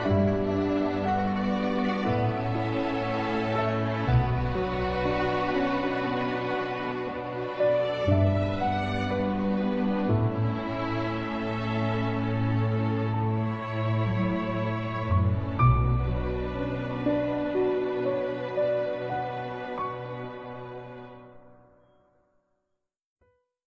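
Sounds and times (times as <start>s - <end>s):
background music: 0.0s - 22.4s.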